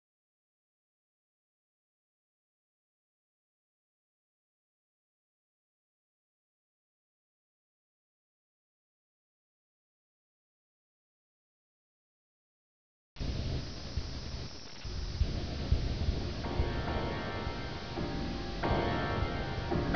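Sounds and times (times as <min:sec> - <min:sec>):
ambience: 0:13.2 - 0:19.9.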